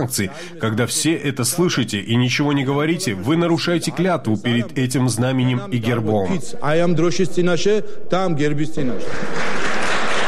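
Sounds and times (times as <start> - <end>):
speech: 0.0 - 9.8
applause from parliament deputies: 9.0 - 10.2.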